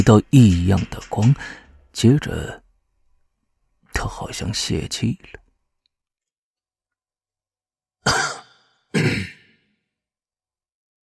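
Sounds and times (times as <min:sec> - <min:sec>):
speech: 0:00.0 - 0:02.6, 0:04.0 - 0:05.4
soft coughing: 0:08.0 - 0:09.7.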